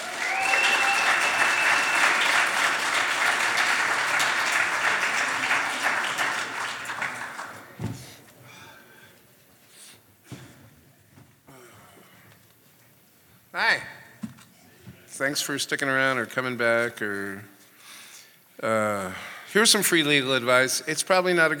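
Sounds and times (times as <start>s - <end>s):
audience applauding to welcome a comedian on stage: 0.0s - 7.8s
speech: 15.2s - 17.5s, 18.6s - 21.5s.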